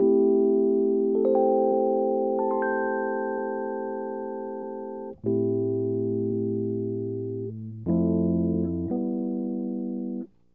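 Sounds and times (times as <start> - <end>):
Rhodes electric piano in A minor, hip hop and RnB: 0.0 - 10.4.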